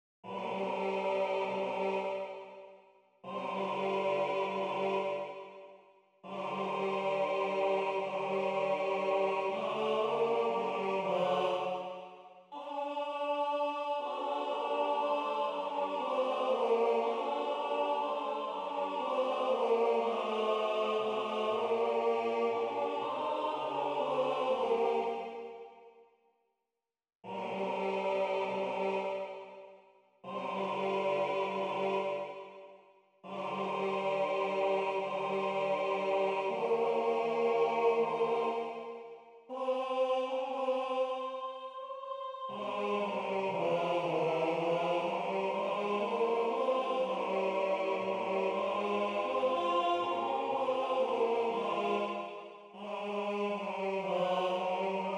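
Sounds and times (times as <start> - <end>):
choral music with tenor solo: 0.3 - 5.6, 6.2 - 25.8, 27.3 - 29.6, 30.2 - 55.1.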